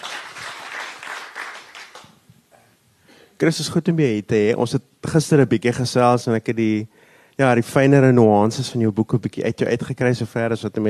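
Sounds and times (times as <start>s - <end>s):
audience applause: 0.0s - 2.2s
speech: 3.4s - 10.8s.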